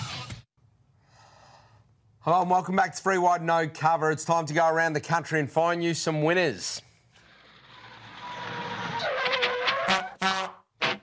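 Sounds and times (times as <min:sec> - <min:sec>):
speech: 0:02.2 - 0:06.9
honking horn sound effect: 0:09.7 - 0:11.0.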